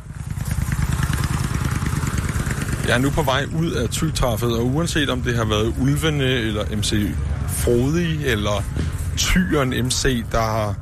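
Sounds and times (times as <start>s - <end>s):
motorcycle engine running: 0.0s - 10.8s
speech: 2.9s - 10.8s.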